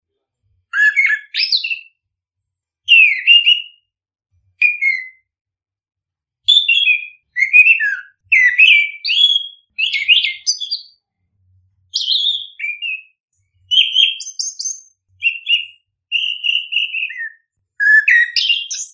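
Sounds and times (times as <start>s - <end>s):
bird singing chirps and whistles: 0.7s - 2.0s, 2.9s - 3.9s, 4.6s - 5.3s, 6.5s - 11.1s, 11.9s - 18.9s.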